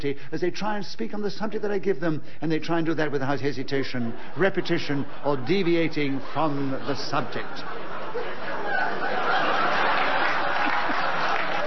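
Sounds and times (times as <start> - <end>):
speech: 0.0 - 8.5
audience laughter: 3.6 - 11.6
audience applause: 8.7 - 11.6.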